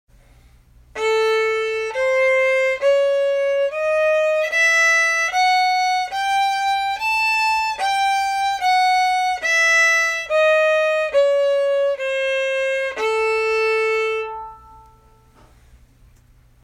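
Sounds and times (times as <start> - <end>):
fiddle playing a sirba scale: 0.9 - 15.3.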